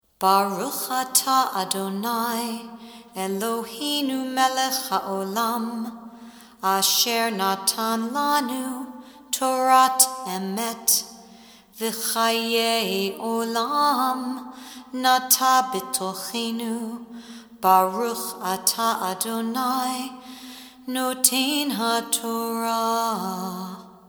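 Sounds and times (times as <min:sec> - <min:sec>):
person chanting Torah: 0:00.2 - 0:11.2, 0:11.8 - 0:23.9.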